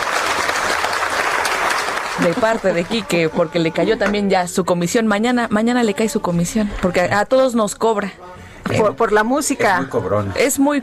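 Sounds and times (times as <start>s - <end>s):
loud applause: 0.0s - 3.4s
speech: 2.2s - 10.8s.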